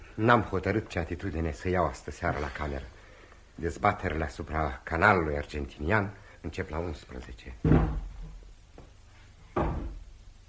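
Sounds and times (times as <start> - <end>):
speech: 0.2 - 3.0, 3.6 - 8.0
chair falling over in next room: 7.6 - 8.4, 9.5 - 10.1.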